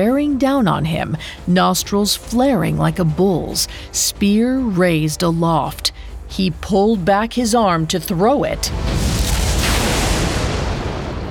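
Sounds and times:
speech: 0.0 - 9.1
lightning strike thunder crash: 8.7 - 11.2.

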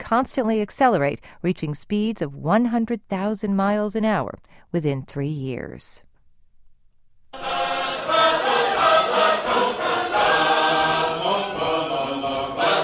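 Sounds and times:
speech: 0.1 - 6.1
sacred harp shape note singing, an American folk tradition: 7.4 - 12.8.

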